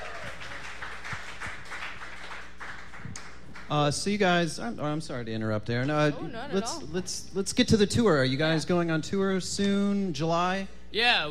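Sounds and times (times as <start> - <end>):
studio audience applause: 0.0 - 3.7
speech: 3.7 - 11.2.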